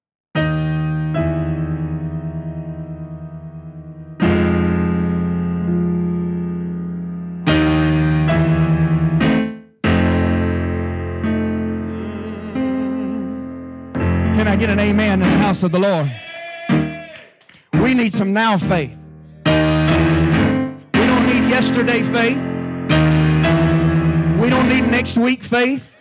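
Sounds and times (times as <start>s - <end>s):
sustained keyboard chords during a church sermon: 0.4s - 16.1s, 17.7s - 25.7s
speech: 14.6s - 16.2s, 17.8s - 19.0s, 21.6s - 22.5s, 24.4s - 25.9s.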